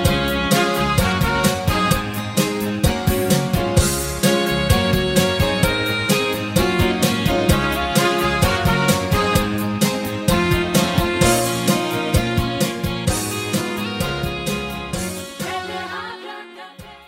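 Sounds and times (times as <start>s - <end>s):
high key hard rock music: 0.0s - 15.9s
backing vocals: 15.4s - 17.0s.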